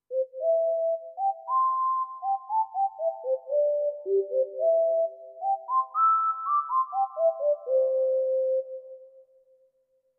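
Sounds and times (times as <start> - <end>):
whistle: 0.1 - 9.3.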